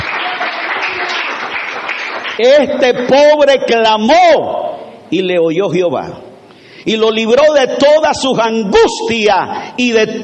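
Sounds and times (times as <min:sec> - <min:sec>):
audience applause: 0:00.0 - 0:02.4
speech: 0:02.4 - 0:10.2.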